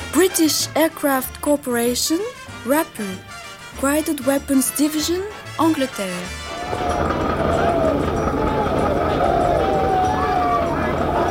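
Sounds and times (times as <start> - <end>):
speech: 0.3 - 7.3
troops shouting before charging to attack: 6.5 - 11.2.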